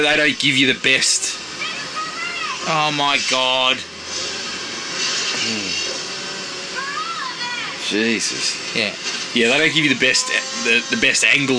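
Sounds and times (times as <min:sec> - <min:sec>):
speech: 0:00.0 - 0:01.4, 0:02.6 - 0:04.3, 0:05.4 - 0:05.8, 0:07.9 - 0:11.5
chainsaw running: 0:02.6 - 0:11.5.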